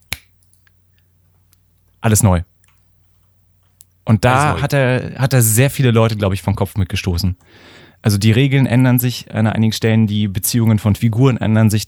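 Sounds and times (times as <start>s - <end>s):
finger snap: 0.1s - 0.7s
speech: 2.0s - 2.5s, 4.1s - 11.8s.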